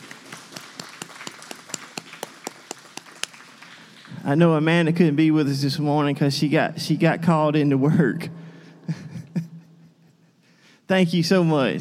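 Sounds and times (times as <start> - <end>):
small group applauding: 0.0 - 4.4
speech: 4.2 - 8.4, 10.9 - 11.7.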